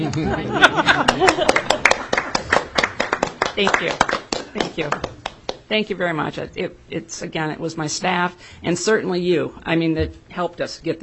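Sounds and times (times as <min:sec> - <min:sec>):
laughter: 0:00.0 - 0:02.0
speech: 0:00.0 - 0:02.0, 0:03.6 - 0:11.0
audience applause: 0:00.9 - 0:05.4.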